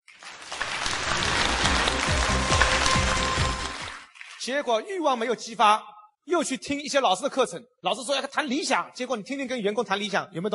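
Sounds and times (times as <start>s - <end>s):
audience applause: 0.2s - 4.1s
speech: 4.4s - 10.5s.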